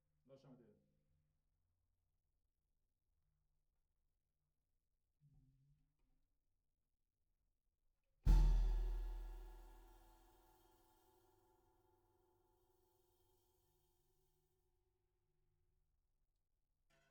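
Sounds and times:
snare drum recorded from the bottom: 8.3s - 10.4s.

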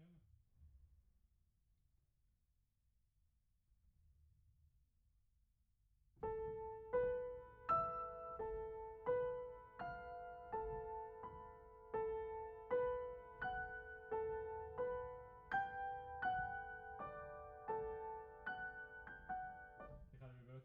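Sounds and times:
piano: 6.2s - 20.6s.

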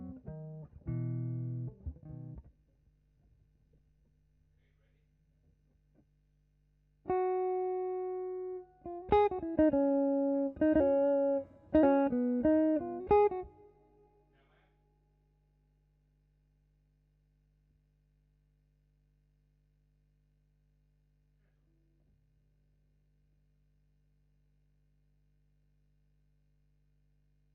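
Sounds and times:
guitar: 0.0s - 2.5s, 7.0s - 14.1s.

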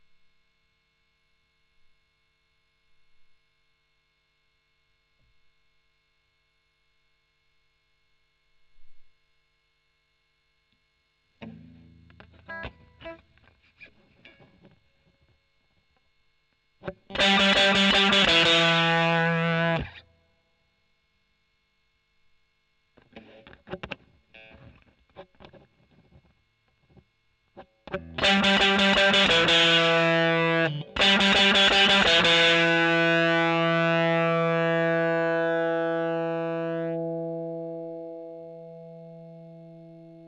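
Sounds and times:
overdriven electric guitar: 11.4s - 16.0s, 16.8s - 20.2s, 23.0s - 40.2s.

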